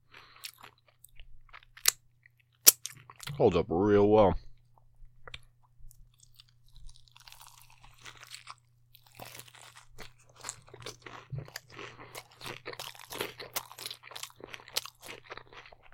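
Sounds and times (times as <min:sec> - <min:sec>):
chewing crispy crunchy food: 0:00.0 - 0:03.4, 0:04.6 - 0:15.9
speech: 0:03.4 - 0:04.4.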